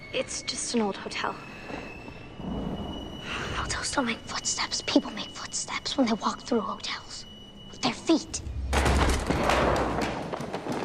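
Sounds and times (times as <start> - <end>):
speech: 0.1 - 2.6, 3.6 - 8.5
wooden chair tumbling down steps: 8.7 - 10.8.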